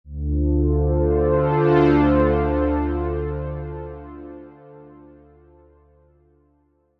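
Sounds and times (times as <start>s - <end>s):
classic synth chorus: 0.2s - 5.7s.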